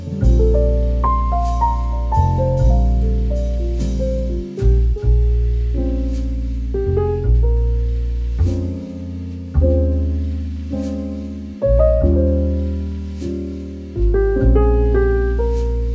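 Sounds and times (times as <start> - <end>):
relaxing romantic jazz podcast music: 0.0 - 15.9.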